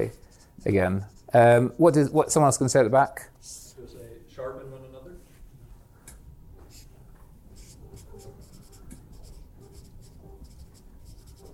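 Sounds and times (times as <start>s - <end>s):
writing by hand: 0.0s - 2.0s, 6.6s - 6.9s, 7.5s - 11.5s
speech: 0.0s - 3.6s.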